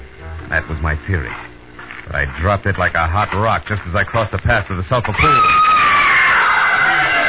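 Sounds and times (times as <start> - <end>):
speech: 0.5 - 1.5, 2.1 - 5.7
person screaming: 5.2 - 7.2.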